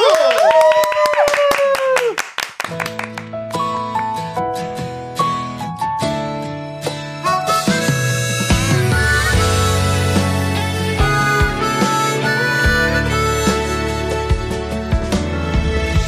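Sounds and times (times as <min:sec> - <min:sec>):
cheering voices: 0:00.0 - 0:02.2
audience clapping: 0:00.0 - 0:03.8
gentle instrumental intro of sustained melodic tones: 0:02.7 - 0:16.0.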